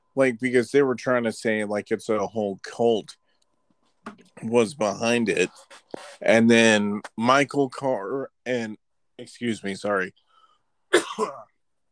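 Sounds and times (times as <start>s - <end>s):
speech: 0.2s - 3.2s, 4.0s - 10.2s, 10.9s - 11.5s
person clearing something stuck in the throat: 10.9s - 11.6s
person coughing: 10.9s - 11.6s.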